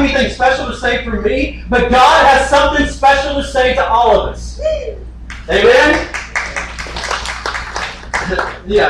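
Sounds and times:
speech: 0:00.2 - 0:06.2, 0:08.3 - 0:08.8
golf clap: 0:05.3 - 0:08.8.

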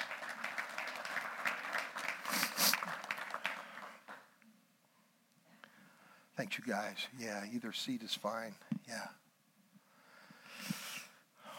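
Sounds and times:
congregation applause during a morning church service: 0:00.0 - 0:04.4
speech: 0:06.4 - 0:09.2.

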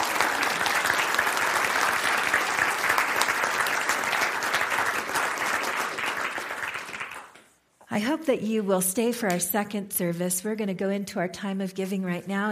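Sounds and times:
audience round of applause: 0:00.0 - 0:07.4
speech: 0:08.0 - 0:12.4.

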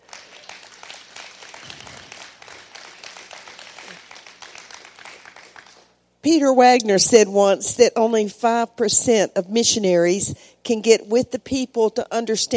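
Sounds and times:
audience applauding: 0:00.0 - 0:05.9
speech: 0:06.2 - 0:12.5.

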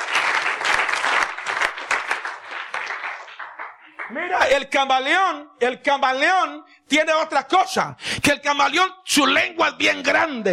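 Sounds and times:
audience clapping hands: 0:00.0 - 0:04.8
speech: 0:04.1 - 0:10.5.

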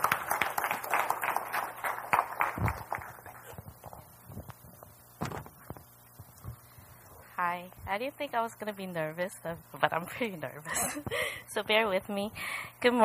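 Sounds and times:
audience applause: 0:00.0 - 0:03.6
speech: 0:08.0 - 0:13.0.

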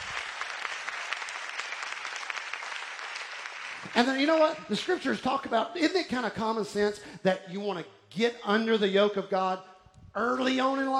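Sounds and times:
audience hand clapping: 0:00.0 - 0:05.0
speech: 0:03.9 - 0:10.9.

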